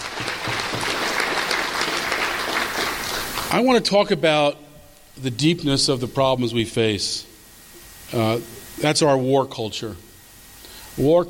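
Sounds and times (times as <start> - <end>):
audience applause: 0.0 - 3.6
speech: 3.5 - 4.6, 5.2 - 7.3, 8.1 - 10.1, 11.0 - 11.2.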